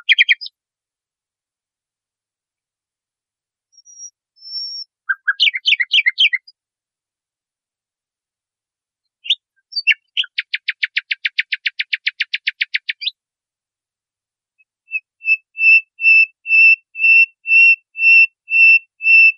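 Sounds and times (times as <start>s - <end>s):
nightingale song: 0.0s - 0.6s, 3.7s - 6.6s, 9.0s - 13.2s, 14.6s - 19.3s.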